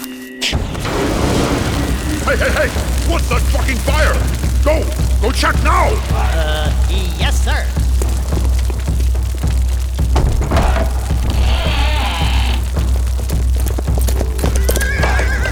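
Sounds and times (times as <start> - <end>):
low rumble: 0.5 - 15.5
galloping hoofbeats of a ridden animal: 0.8 - 15.5
speech: 2.3 - 7.8
horse neighing: 10.6 - 12.7, 14.5 - 15.5.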